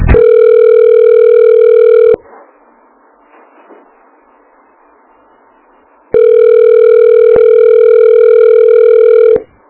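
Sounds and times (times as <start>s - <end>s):
telephone line tone when calling an occupied extension: 0.1s - 2.2s, 6.1s - 9.5s.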